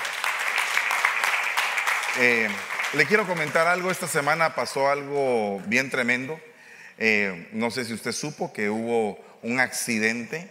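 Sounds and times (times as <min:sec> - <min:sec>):
crowd applause: 0:00.0 - 0:04.3
speech: 0:02.2 - 0:10.5.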